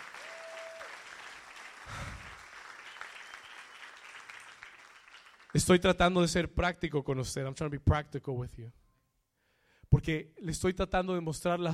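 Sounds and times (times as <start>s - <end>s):
audience applause: 0.0s - 5.6s
speech: 5.5s - 8.8s, 10.0s - 11.7s.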